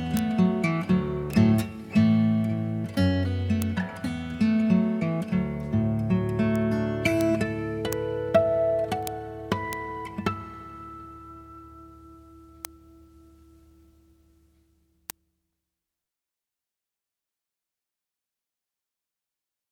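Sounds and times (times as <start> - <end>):
Celtic fingerstyle guitar: 0.0 - 14.7.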